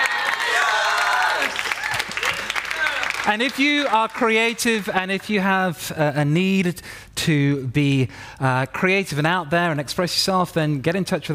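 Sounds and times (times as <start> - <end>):
voices cheering: 0.0 - 3.9
round of applause: 0.0 - 5.3
speech: 3.2 - 11.3.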